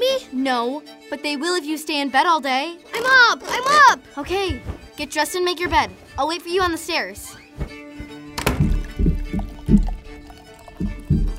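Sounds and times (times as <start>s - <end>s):
speech: 0.4s - 7.7s
loud stomping footsteps of a child: 4.2s - 11.3s.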